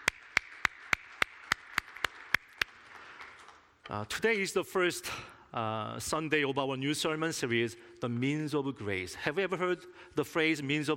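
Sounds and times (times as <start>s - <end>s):
audience applause: 0.0s - 3.7s
speech: 3.9s - 10.9s.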